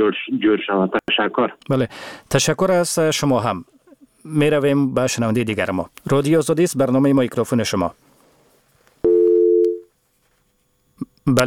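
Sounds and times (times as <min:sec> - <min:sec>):
speech: 0:00.0 - 0:08.0, 0:11.3 - 0:11.4
telephone busy tone after a call was cut off: 0:09.0 - 0:09.9.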